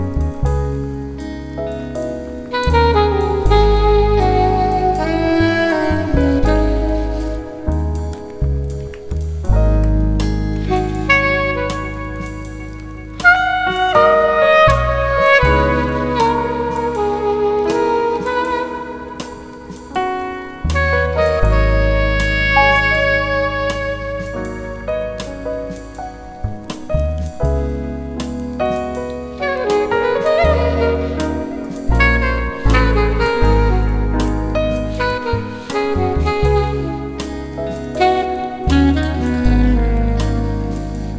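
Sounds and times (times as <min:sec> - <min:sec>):
jazz soundscape: 0:00.0 - 0:41.1.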